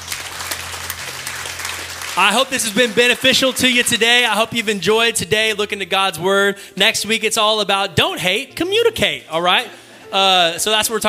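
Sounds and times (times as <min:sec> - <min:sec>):
crowd clapping: 0:00.0 - 0:04.8
speech: 0:02.2 - 0:11.0.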